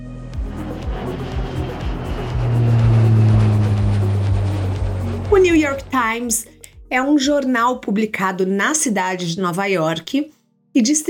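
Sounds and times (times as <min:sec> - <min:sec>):
small jet engine roaring on takeoff: 0:00.2 - 0:06.6
thumping rhythmic jingle beat: 0:00.3 - 0:06.9
speech: 0:06.0 - 0:11.0.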